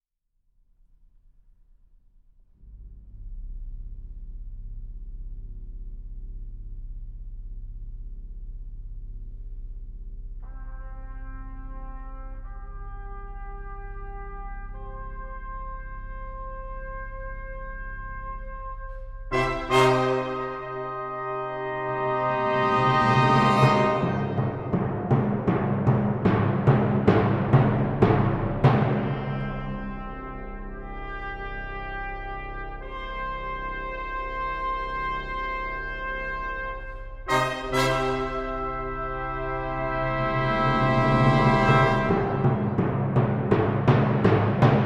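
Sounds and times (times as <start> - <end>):
brass ensemble fanfare: 10.5 - 25.6, 26.2 - 44.8.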